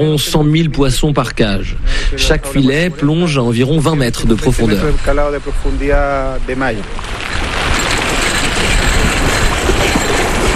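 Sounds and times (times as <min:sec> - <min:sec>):
speech: 0:00.0 - 0:07.4
rotating metal surface tubes flinging feed into salmon farm cages: 0:06.9 - 0:10.5.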